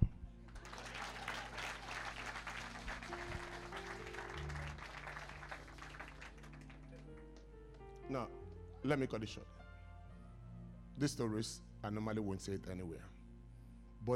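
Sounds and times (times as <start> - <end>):
audience clapping: 0.5 - 8.0
speech: 8.1 - 9.6, 11.0 - 13.1.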